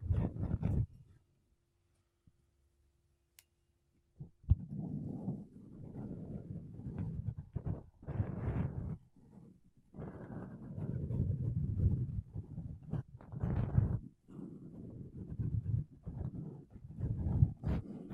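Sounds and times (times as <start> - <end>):
makeup brushes and a sponge rubbing across a microphone: 0.0 - 0.9, 4.5 - 18.1.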